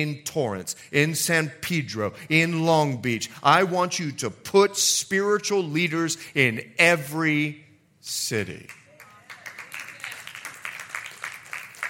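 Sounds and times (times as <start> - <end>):
speech: 0.0 - 8.8
women in audience clapping: 8.7 - 11.8.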